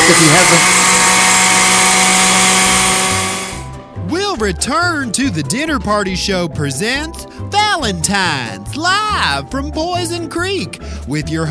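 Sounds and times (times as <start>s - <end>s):
blenders running at Orange Julius: 0.0s - 3.8s
speech: 0.1s - 0.8s, 4.4s - 11.4s.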